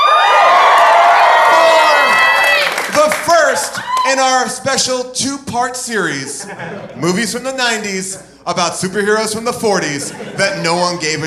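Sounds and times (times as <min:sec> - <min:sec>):
live crowd cheering: 0:00.0 - 0:04.6
speech: 0:04.1 - 0:11.2
laughter: 0:06.2 - 0:08.3, 0:09.6 - 0:11.2.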